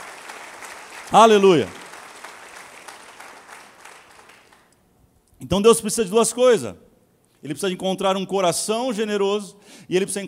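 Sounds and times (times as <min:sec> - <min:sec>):
audience applause: 0:00.0 - 0:04.7
speech: 0:01.1 - 0:01.8, 0:05.5 - 0:10.2.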